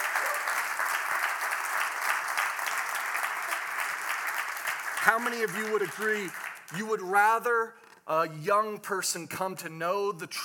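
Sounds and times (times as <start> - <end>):
audience applauding: 0.0 - 6.9
speech: 5.1 - 10.4.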